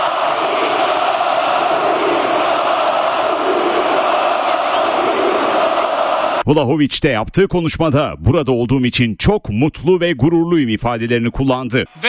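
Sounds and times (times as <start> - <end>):
Beşiktaş fans roaring and cheering in Tüpraş Stadium: 0.0 - 6.5
speech: 6.5 - 12.0.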